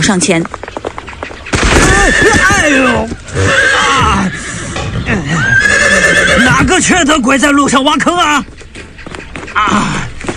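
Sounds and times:
speech: 0:00.1 - 0:00.8, 0:02.0 - 0:04.4, 0:05.1 - 0:08.6, 0:09.6 - 0:10.0
horse neighing as its rider falls into a pit: 0:01.6 - 0:06.7.

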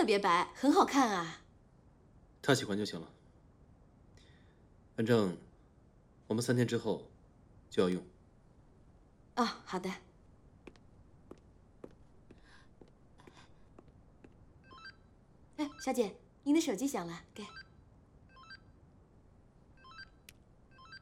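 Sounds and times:
speech: 0:00.0 - 0:01.4, 0:02.4 - 0:03.2, 0:05.0 - 0:05.5, 0:06.3 - 0:07.1, 0:07.7 - 0:08.1, 0:09.4 - 0:10.0, 0:15.6 - 0:17.6
mobile phone ringing: 0:14.6 - 0:15.0, 0:18.3 - 0:18.7, 0:19.8 - 0:20.9
soft high beeps: 0:14.6 - 0:16.2, 0:17.4 - 0:18.8, 0:19.8 - 0:20.9.

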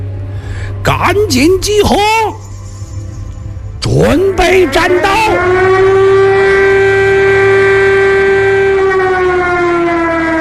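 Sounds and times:
speech: 0:00.8 - 0:02.5, 0:03.9 - 0:06.1
shrill air raid siren: 0:02.4 - 0:10.4.

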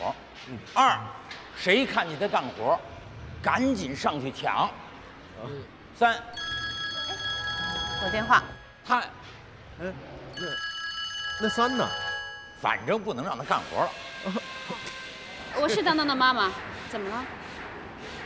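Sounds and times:
speech: 0:00.1 - 0:04.8, 0:05.4 - 0:06.5, 0:08.0 - 0:09.2, 0:09.8 - 0:10.7, 0:11.4 - 0:12.0, 0:12.6 - 0:14.9, 0:15.6 - 0:17.4
phone ringing: 0:06.3 - 0:09.0, 0:10.3 - 0:13.1.

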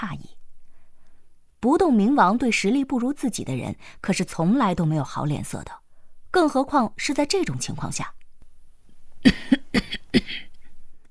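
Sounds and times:
speech: 0:01.6 - 0:08.2, 0:09.2 - 0:10.4
old woman coughing: 0:09.2 - 0:10.5.

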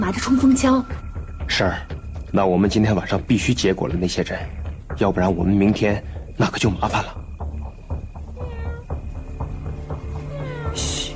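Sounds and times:
speech: 0:00.1 - 0:07.3
person imitating a cat's meow: 0:08.4 - 0:08.9, 0:10.3 - 0:11.1.

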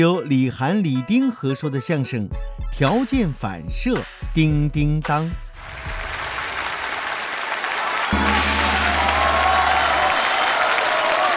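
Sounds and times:
speech: 0:00.0 - 0:05.4
crowd applause: 0:05.6 - 0:11.3
low droning hum: 0:08.2 - 0:10.6.

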